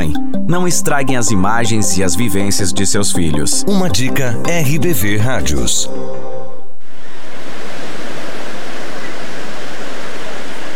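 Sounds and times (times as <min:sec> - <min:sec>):
speech: 0:00.5 - 0:06.3
ocean waves: 0:06.9 - 0:10.7.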